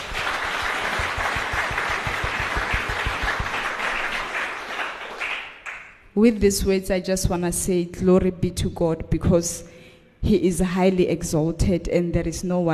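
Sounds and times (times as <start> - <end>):
audience clapping hands: 0.0 - 6.0
speech: 6.2 - 12.7.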